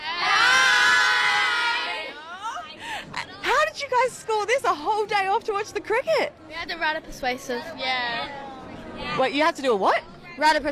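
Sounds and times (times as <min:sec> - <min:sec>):
schoolchildren from Grey Primary School shouting hello together: 0:00.0 - 0:02.6
speech: 0:04.0 - 0:10.7.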